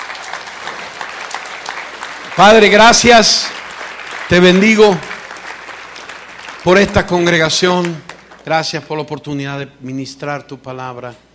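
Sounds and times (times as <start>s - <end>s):
audience applause: 0.0s - 8.5s
speech: 2.4s - 3.6s, 4.3s - 5.1s, 6.6s - 11.2s.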